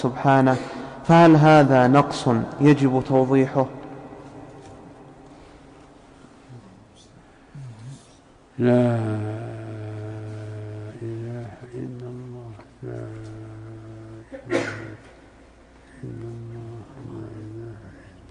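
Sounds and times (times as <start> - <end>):
speech: 0.0 - 3.8, 8.6 - 9.4
person sneezing: 14.2 - 15.2.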